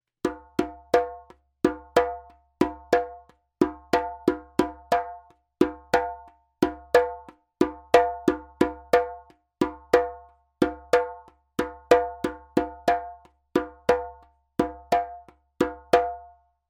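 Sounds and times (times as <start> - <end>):
djembe drumming: 0.2 - 16.4.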